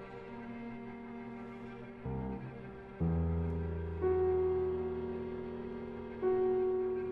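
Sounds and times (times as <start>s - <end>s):
piano quintet playing: 1.9s - 7.1s.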